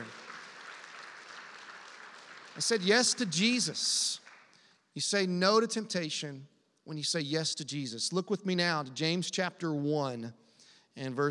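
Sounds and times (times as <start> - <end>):
crowd applause: 0.0 - 4.6
speech: 2.6 - 4.2, 5.0 - 10.4, 11.0 - 11.2.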